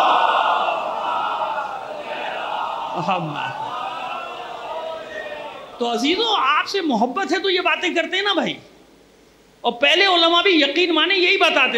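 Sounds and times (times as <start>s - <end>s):
audience reciting salawat in unison: 0.0s - 5.8s
speech: 3.0s - 3.7s, 5.8s - 8.7s, 9.6s - 11.7s.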